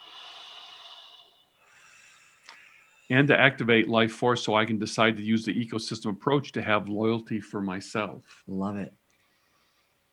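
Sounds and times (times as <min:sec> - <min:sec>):
soft breath during a guided breathing exercise: 0:00.0 - 0:03.1, 0:09.1 - 0:10.1
speech: 0:03.1 - 0:09.0.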